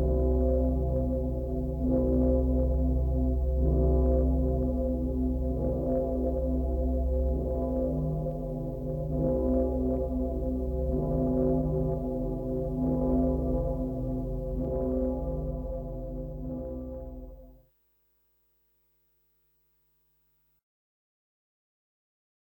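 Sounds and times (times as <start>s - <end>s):
cathedral bells: 0.0s - 17.5s.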